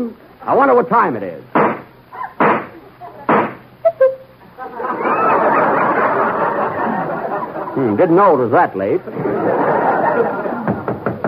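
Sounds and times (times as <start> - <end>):
speech: 0.0 - 1.6, 7.8 - 10.5
laughter: 3.8 - 8.0, 9.0 - 11.2
knock at the door: 10.6 - 11.2.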